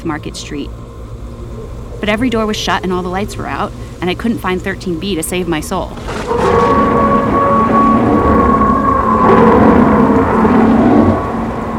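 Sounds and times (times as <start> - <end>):
speech: 0.0 - 0.9, 2.0 - 7.2
eerie howl: 6.0 - 11.7.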